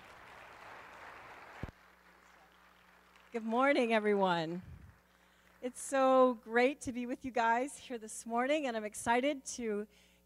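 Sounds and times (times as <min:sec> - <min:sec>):
crowd applauding: 0:00.0 - 0:03.9
speech: 0:03.3 - 0:04.7, 0:05.6 - 0:10.2.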